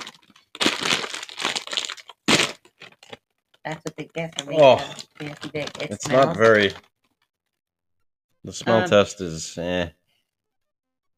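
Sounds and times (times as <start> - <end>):
plastic snack bag being torn open: 0.0 - 3.2, 4.6 - 6.8
speech: 3.6 - 6.9, 8.4 - 10.0.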